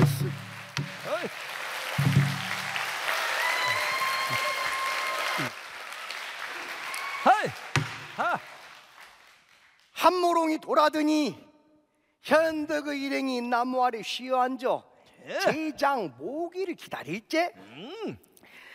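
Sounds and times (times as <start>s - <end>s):
crowd applause: 0.0s - 9.9s
speech: 10.1s - 11.4s, 12.2s - 18.3s.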